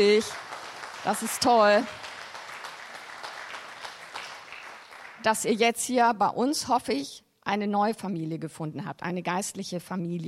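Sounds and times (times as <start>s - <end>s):
speech: 0.0s - 0.4s, 1.0s - 2.0s, 5.2s - 10.2s
church congregation applauding: 0.0s - 5.5s.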